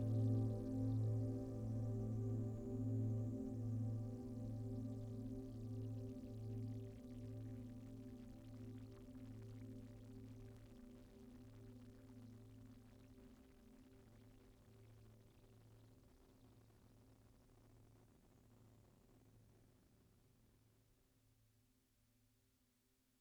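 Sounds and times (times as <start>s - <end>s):
ambient synthesizer pad: 0.0s - 15.5s.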